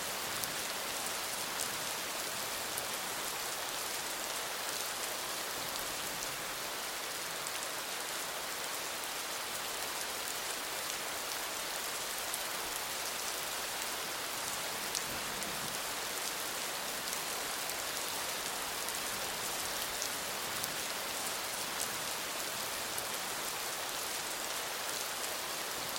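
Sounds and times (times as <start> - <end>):
rain in a city: 0.0 - 25.9.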